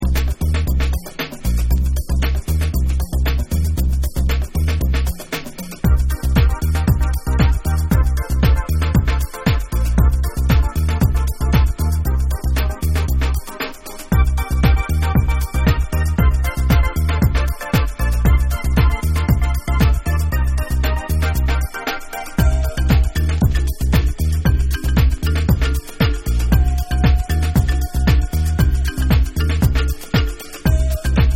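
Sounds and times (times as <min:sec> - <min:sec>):
bonus beats mix: 0:00.0 - 0:31.3.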